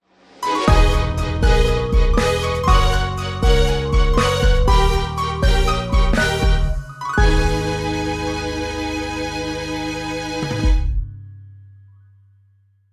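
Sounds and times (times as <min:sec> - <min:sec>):
stage start jingle: 0:00.4 - 0:10.1.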